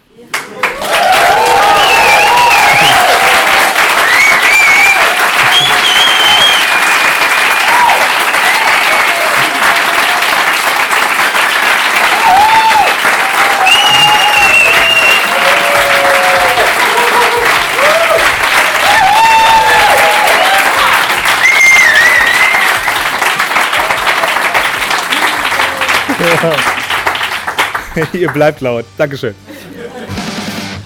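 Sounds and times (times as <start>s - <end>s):
loud audience applause: 0.3s - 28.4s
audience cheers and whistles: 0.6s - 10.2s, 12.0s - 24.6s
laughter: 16.6s - 17.8s, 25.1s - 27.0s, 27.7s - 28.4s, 29.4s - 30.6s
speech: 28.0s - 29.5s.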